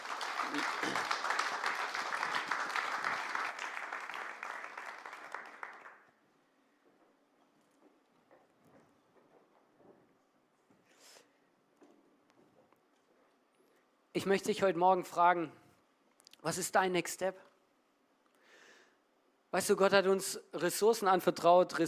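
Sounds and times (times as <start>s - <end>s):
audience applause: 0.0s - 6.1s
speech: 0.5s - 1.2s, 14.2s - 15.6s, 16.4s - 17.5s, 19.5s - 21.8s.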